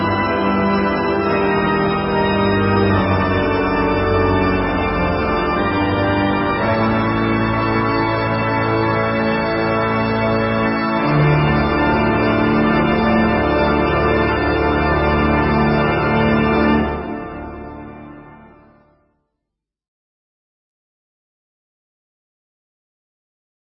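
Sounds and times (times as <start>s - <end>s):
organ playing: 0.0s - 18.8s.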